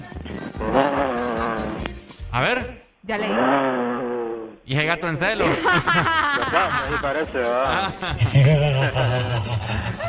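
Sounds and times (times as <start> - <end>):
caller imitating a lion's roar: 0.6 - 1.9, 3.3 - 4.6
speech: 2.4 - 3.6, 4.7 - 10.0
laughter: 5.4 - 10.0.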